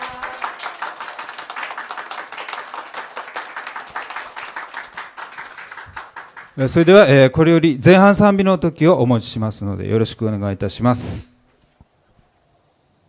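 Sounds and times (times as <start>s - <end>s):
audience applause: 0.0s - 6.6s
speech: 6.6s - 11.3s.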